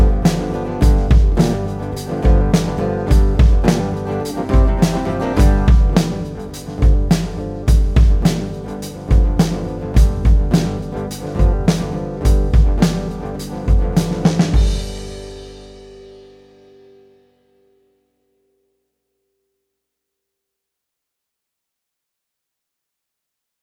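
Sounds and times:
blues music: 0.0s - 16.4s.

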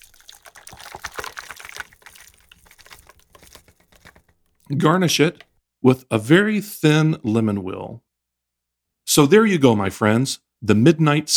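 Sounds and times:
cocktail strained into a glass: 0.0s - 5.5s
speech: 4.7s - 8.0s, 9.1s - 11.3s.

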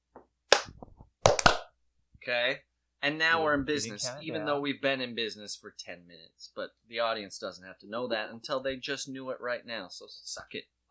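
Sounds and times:
hand clapping: 0.5s - 1.7s
speech: 2.3s - 10.8s.

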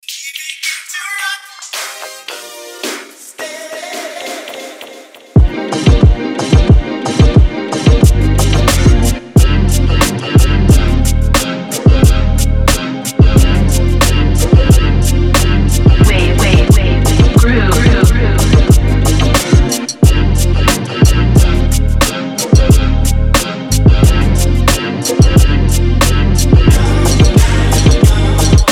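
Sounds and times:
rocksteady groove: 5.4s - 28.6s.

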